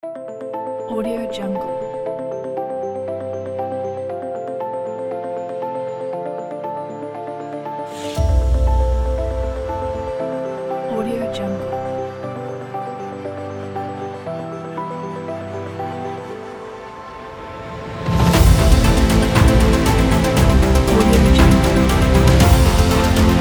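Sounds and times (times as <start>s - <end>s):
epic sci-fi music: 5.9s - 23.3s.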